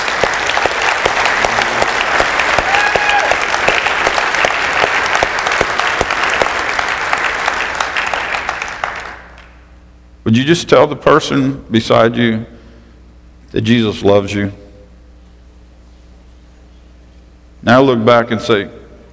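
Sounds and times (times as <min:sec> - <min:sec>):
audience clapping hands: 0:00.0 - 0:09.6
speech: 0:10.3 - 0:12.6, 0:13.5 - 0:14.6, 0:17.6 - 0:18.8.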